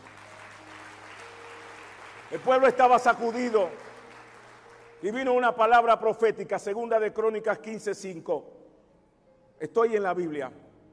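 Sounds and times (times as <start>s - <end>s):
audience clapping hands: 0.0s - 5.7s
speech: 2.3s - 3.9s, 5.0s - 8.6s, 9.6s - 10.6s.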